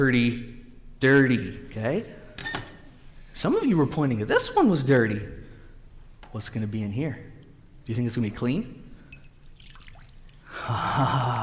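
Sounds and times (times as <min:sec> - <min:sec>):
speech: 0:00.0 - 0:02.5, 0:03.4 - 0:05.4, 0:06.3 - 0:07.3, 0:07.9 - 0:08.8, 0:10.6 - 0:11.4
water pouring as a sponge is squeezed out into a clean bowl: 0:09.1 - 0:10.6.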